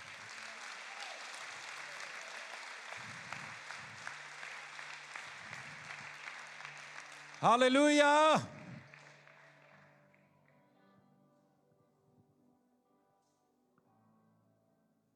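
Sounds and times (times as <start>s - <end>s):
crowd applauding: 0.0s - 10.6s
speech: 7.4s - 8.6s.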